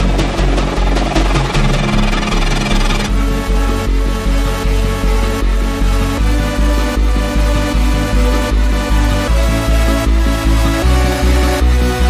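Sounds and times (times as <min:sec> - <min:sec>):
distorted soundscape: 0:00.0 - 0:12.0.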